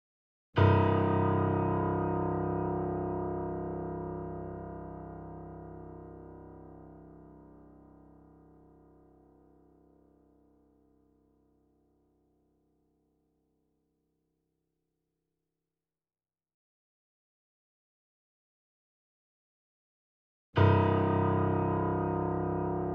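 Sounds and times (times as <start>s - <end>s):
grand piano notes C1 E1 A1 with effects: 0.6s - 10.6s, 20.6s - 22.9s.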